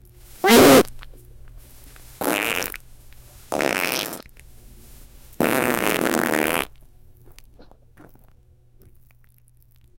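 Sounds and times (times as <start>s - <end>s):
big farts: 0.4s - 1.0s, 2.2s - 2.8s, 3.5s - 4.3s, 5.4s - 6.8s.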